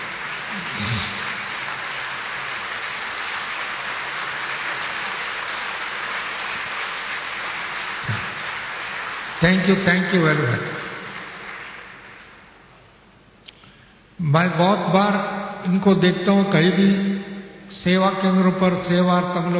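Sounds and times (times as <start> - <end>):
audience standing and applauding: 0.0 - 12.7
speech: 9.4 - 10.8, 14.3 - 17.1, 17.7 - 19.5.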